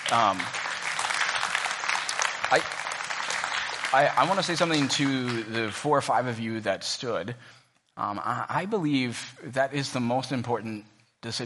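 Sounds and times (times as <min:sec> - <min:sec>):
audience clapping in praise: 0:00.0 - 0:06.4
speech: 0:00.1 - 0:00.6, 0:02.5 - 0:02.8, 0:03.9 - 0:11.4.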